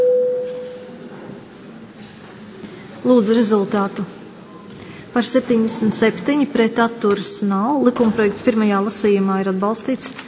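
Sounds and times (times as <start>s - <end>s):
electronic tone signalling a vote in the Latvian parliament: 0.0s - 0.9s
speech: 3.0s - 4.2s, 5.2s - 10.2s.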